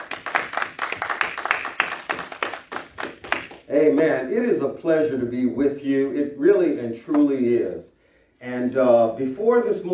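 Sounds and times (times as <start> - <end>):
audience applause: 0.0 - 3.6
speech: 3.7 - 9.9.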